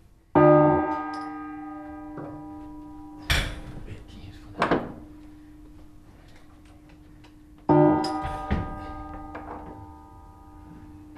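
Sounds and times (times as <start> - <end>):
fixed bells struck by cable-pulled clappers: 0.4 - 3.8, 7.7 - 11.1.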